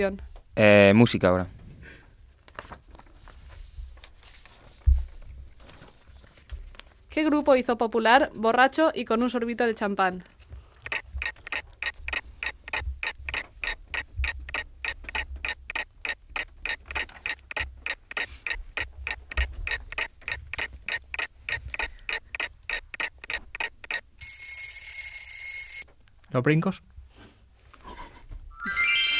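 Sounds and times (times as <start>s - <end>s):
speech: 0.0s - 1.6s, 7.2s - 10.3s, 26.4s - 26.9s
quiz timer clock ticking: 10.8s - 24.2s.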